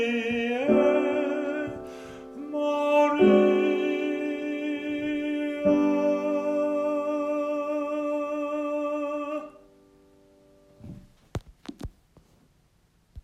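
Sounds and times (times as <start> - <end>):
tenor singing: 0.0 - 9.8.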